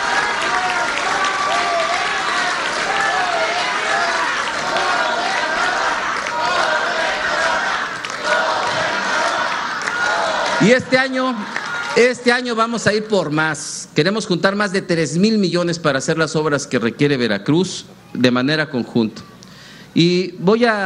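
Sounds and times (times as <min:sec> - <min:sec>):
audience applause: 0:00.0 - 0:12.2
speech: 0:10.6 - 0:19.3, 0:19.9 - 0:20.8.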